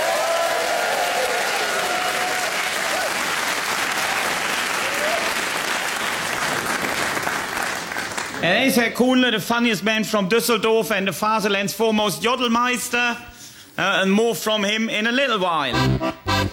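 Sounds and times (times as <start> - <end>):
audience clapping to welcome a comedian on stage: 0.0 - 8.6
speech: 8.4 - 16.5.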